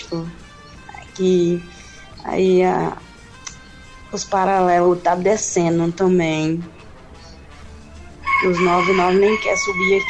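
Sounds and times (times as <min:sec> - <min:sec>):
speech: 0:00.1 - 0:00.4, 0:01.2 - 0:03.0, 0:04.1 - 0:06.8, 0:08.4 - 0:10.0
rooster crowing beside a steep damaged neighbourhood street: 0:08.2 - 0:10.0.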